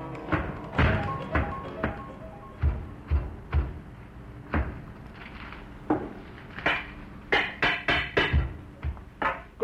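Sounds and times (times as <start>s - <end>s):
rickety wooden chair thumping while being wrestled with: 0.1s - 2.1s, 2.6s - 3.9s, 4.5s - 4.9s, 5.9s - 9.5s.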